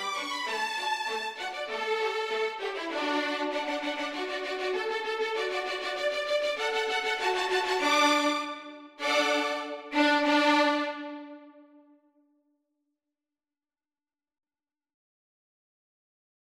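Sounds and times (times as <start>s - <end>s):
two violins playing a backing track: 0.0s - 11.7s.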